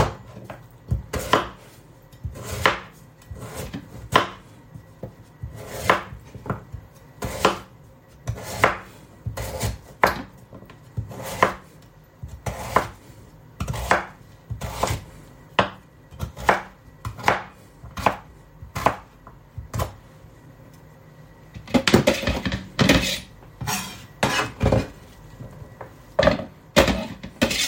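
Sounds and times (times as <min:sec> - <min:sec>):
knife chopping sweet potato on a cutting board: 0:00.0 - 0:13.0, 0:13.6 - 0:20.0, 0:21.6 - 0:25.0, 0:26.2 - 0:27.6.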